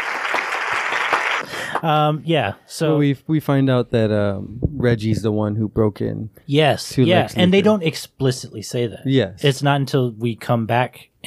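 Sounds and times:
applause: 0.0 - 1.9
speech: 1.8 - 11.2.

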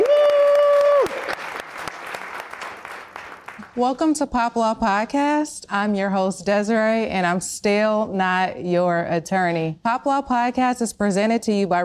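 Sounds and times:
live audience applause at the House of Culture in Salt Lake City: 0.0 - 3.8
speech: 3.8 - 11.8.

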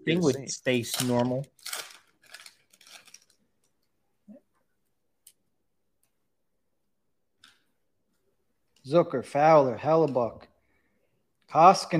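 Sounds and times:
speech: 0.0 - 1.9, 8.9 - 10.5, 11.5 - 11.9
hockey trading card pack wrapper being torn open: 0.7 - 3.8.

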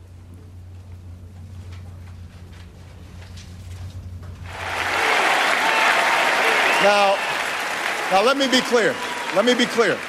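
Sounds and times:
large crowd applauding: 4.5 - 10.0
shouts and whistles: 4.5 - 10.0
speech: 6.8 - 7.2, 8.1 - 10.0.

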